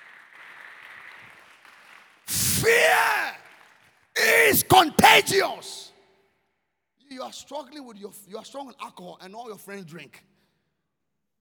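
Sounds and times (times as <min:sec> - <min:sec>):
crowd clapping: 0:00.0 - 0:05.7
speech: 0:02.6 - 0:03.2, 0:04.3 - 0:05.8, 0:07.1 - 0:10.3.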